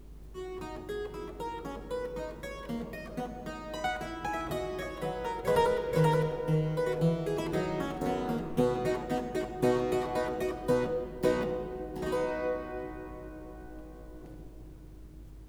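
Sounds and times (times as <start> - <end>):
fast keyboard piece in C major: 1.0 - 15.1.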